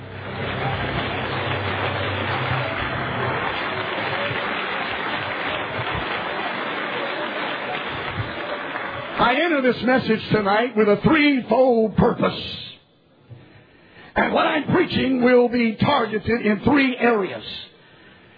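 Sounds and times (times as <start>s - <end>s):
audience clapping hands: 0.0s - 10.4s
speech: 9.3s - 12.7s, 14.3s - 17.7s.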